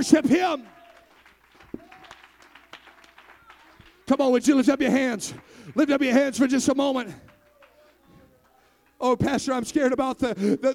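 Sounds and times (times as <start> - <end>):
speech: 0.0 - 0.8, 4.1 - 7.3, 9.0 - 10.7
audience shouting praise: 0.0 - 4.2
audience clapping: 0.0 - 9.8.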